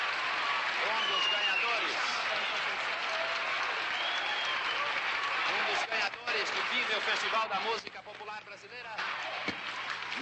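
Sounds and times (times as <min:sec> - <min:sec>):
crowd noise: 0:00.0 - 0:08.1, 0:08.8 - 0:10.1
theatre audience applause: 0:00.0 - 0:08.3, 0:09.0 - 0:10.1
speech: 0:06.8 - 0:09.6.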